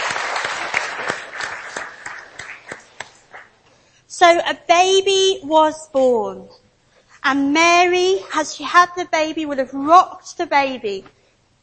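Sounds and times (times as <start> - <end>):
audience applause: 0.0 - 3.6
speech: 4.2 - 6.6, 7.2 - 11.2.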